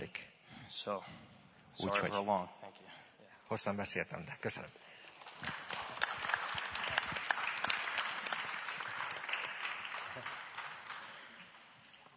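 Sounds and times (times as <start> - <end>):
speech: 0.7 - 5.6
crowd applauding: 5.1 - 11.8.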